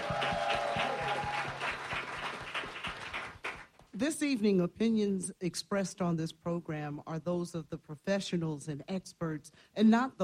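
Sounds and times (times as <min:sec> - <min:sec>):
applause: 0:00.0 - 0:03.9
speech: 0:04.0 - 0:10.2.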